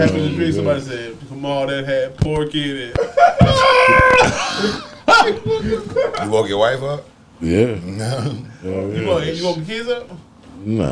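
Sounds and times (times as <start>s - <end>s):
speech: 0.0s - 10.8s
laughter: 3.0s - 6.5s
person imitating a quick scream from a dream: 3.4s - 4.4s.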